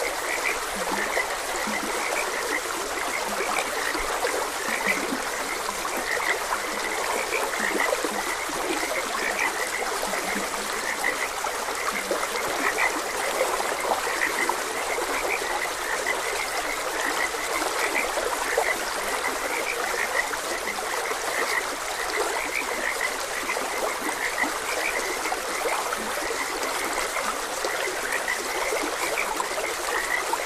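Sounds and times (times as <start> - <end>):
chorus of frogs chirping: 0.0 - 30.4
flowing water: 0.0 - 30.4.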